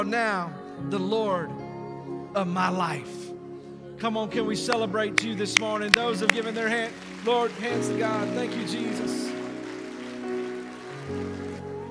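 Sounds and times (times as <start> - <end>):
speech: 0.0 - 1.6, 2.3 - 3.3, 4.0 - 9.3
sustained musical tones: 3.4 - 11.8
audience clapping: 4.7 - 11.8.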